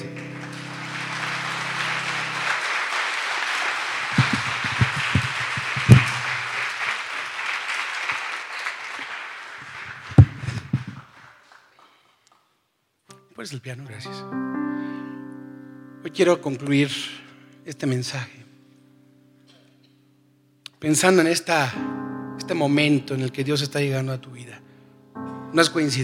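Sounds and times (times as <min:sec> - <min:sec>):
audience applauding: 0:00.0 - 0:11.9
speech: 0:13.4 - 0:15.0, 0:16.1 - 0:18.4, 0:20.8 - 0:24.6, 0:25.5 - 0:26.0.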